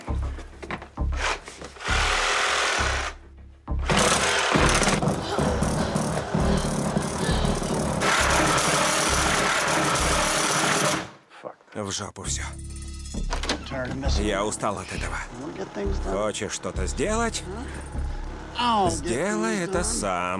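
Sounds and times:
power saw cutting through a door: 0:01.2 - 0:03.2, 0:03.9 - 0:11.2, 0:14.3 - 0:19.7
speech: 0:11.8 - 0:12.8, 0:13.7 - 0:18.0, 0:18.6 - 0:20.3.

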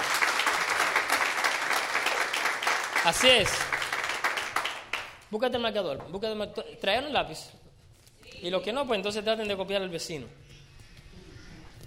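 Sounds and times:
workshop audience clapping to welcome a participant: 0:00.0 - 0:05.3
speech: 0:03.0 - 0:03.8, 0:05.3 - 0:07.6, 0:08.4 - 0:10.4.

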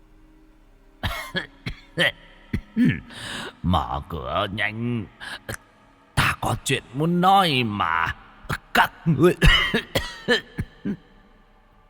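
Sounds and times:
old man coughing: 0:01.0 - 0:03.2, 0:08.8 - 0:11.1
speech: 0:01.3 - 0:05.6, 0:06.4 - 0:08.2, 0:08.8 - 0:11.0.

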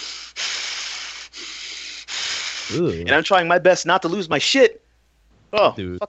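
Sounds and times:
voice imitating heavy creepy breathing: 0:00.0 - 0:03.1
speech: 0:02.7 - 0:04.8, 0:05.5 - 0:06.0.

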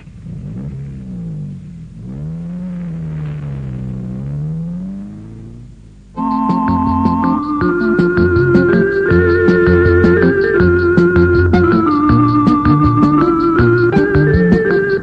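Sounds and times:
car engine droning as a car is brought out: 0:00.0 - 0:15.0
loud steady tonal sound: 0:06.0 - 0:15.0.

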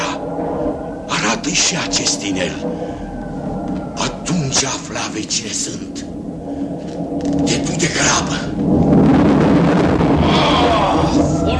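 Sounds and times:
thunder of a storm: 0:00.0 - 0:11.5
speech: 0:01.4 - 0:03.1, 0:04.0 - 0:06.2, 0:07.3 - 0:09.0.

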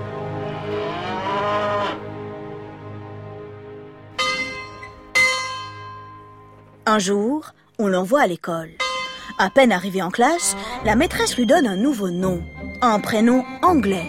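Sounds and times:
cow mooing: 0:00.2 - 0:02.1
bell strikes: 0:04.2 - 0:06.6, 0:08.8 - 0:13.5
speech: 0:07.0 - 0:08.8, 0:09.4 - 0:14.0.

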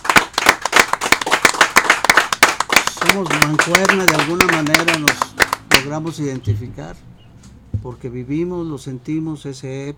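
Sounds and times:
audience applause: 0:00.0 - 0:05.9
speech: 0:03.1 - 0:07.2, 0:07.8 - 0:09.9.

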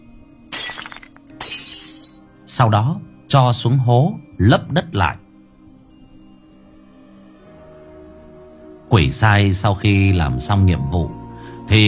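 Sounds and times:
clinking fragments of a smashed jar: 0:00.5 - 0:02.2
jar engraved with talismans smashing: 0:00.5 - 0:02.2
speech: 0:02.5 - 0:05.2, 0:08.9 - 0:11.8.

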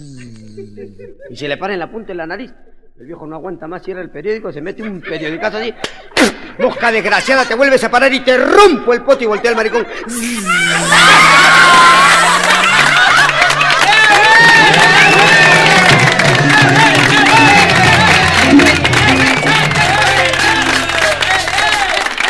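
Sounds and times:
laughter: 0:00.0 - 0:02.9, 0:04.7 - 0:07.9, 0:09.1 - 0:22.2
speech: 0:00.0 - 0:12.5
audience applause: 0:10.2 - 0:22.2.

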